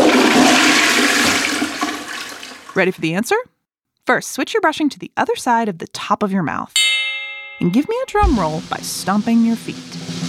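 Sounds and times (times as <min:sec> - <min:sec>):
toilet flushing: 0:00.0 - 0:02.8
speech: 0:02.8 - 0:03.5, 0:04.1 - 0:06.8, 0:07.6 - 0:10.2.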